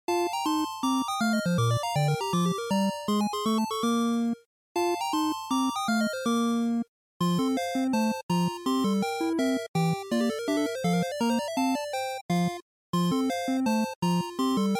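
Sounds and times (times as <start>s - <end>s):
NES sports game music: 0.2s - 14.7s.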